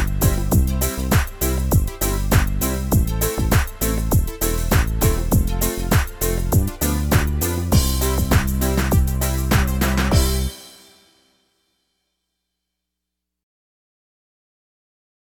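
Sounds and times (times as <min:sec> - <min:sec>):
bells ringing: 0:00.0 - 0:10.9.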